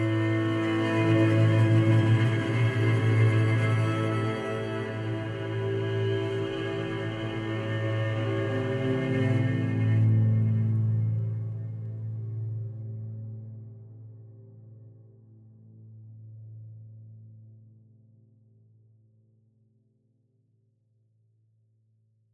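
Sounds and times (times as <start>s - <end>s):
solo string instrument: 0.0s - 15.6s.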